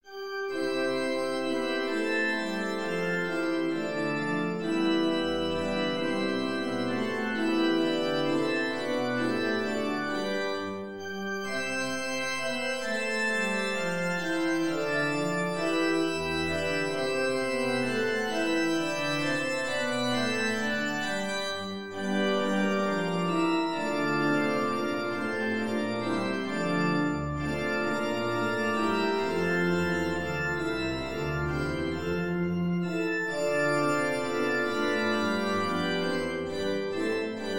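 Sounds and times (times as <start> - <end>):
gothic minuet: 0.0 - 37.5.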